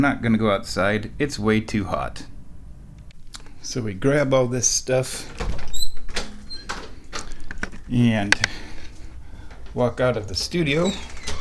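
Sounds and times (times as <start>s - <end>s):
speech: 0.0s - 2.3s, 3.6s - 5.6s, 7.9s - 8.6s, 9.8s - 11.1s
basement door being opened: 5.2s - 7.8s, 9.4s - 11.3s.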